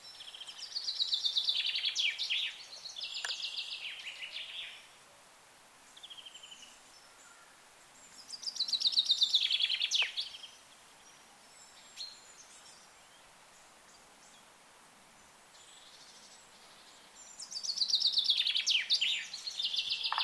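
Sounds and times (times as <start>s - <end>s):
bird chirping: 0.0s - 4.9s, 8.0s - 14.5s, 15.5s - 20.2s.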